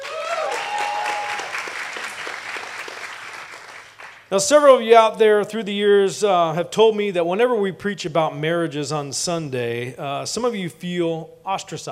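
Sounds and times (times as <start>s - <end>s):
church congregation applauding to welcome the pastor's wife onto the stage: 0.0s - 4.3s
speech: 4.3s - 11.9s.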